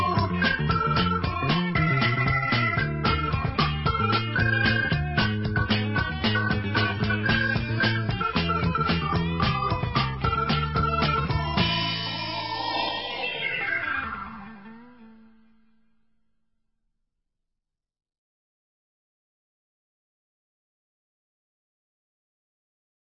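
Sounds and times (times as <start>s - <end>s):
ballet dance music: 0.0s - 14.6s.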